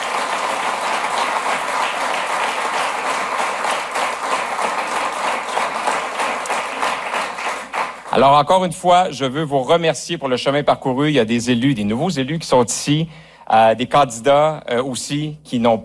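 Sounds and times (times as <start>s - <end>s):
audience applauding: 0.0s - 8.3s
speech: 8.2s - 15.8s.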